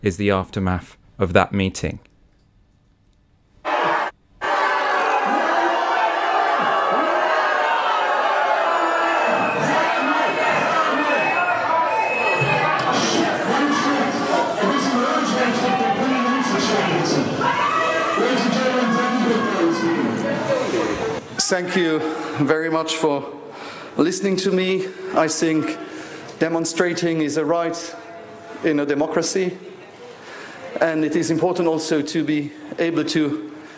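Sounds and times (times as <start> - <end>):
speech: 0.0 - 2.1, 21.5 - 23.4, 24.0 - 28.0, 28.6 - 29.7, 30.8 - 33.5
scattered shouts and whoops: 3.6 - 21.1
large crowd booing: 3.6 - 21.3.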